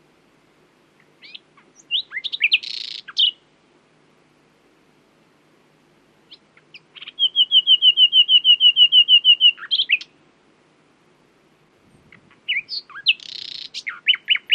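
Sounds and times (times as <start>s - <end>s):
common nightingale Luscinia megarhynchos singing: 1.0s - 3.5s, 6.2s - 10.2s, 11.9s - 14.5s.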